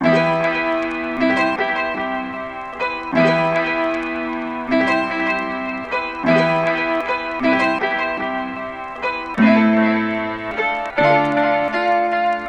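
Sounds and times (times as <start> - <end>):
piano in A minor: 0.0 - 12.4.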